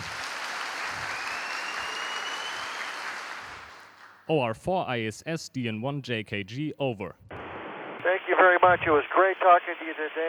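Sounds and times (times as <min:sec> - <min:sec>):
applause: 0:00.0 - 0:04.3
speech: 0:04.3 - 0:07.3, 0:08.4 - 0:10.2.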